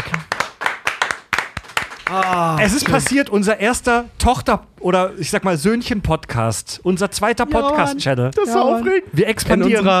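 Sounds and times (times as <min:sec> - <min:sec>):
short burst of hand clapping: 0:00.0 - 0:03.3
speech: 0:02.1 - 0:09.9.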